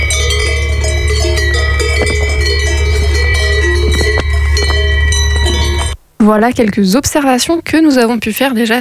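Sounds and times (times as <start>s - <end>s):
cow bells ringing in alpine pastures: 0.0s - 6.0s
steady low rumble: 0.0s - 6.1s
speech: 6.3s - 8.7s.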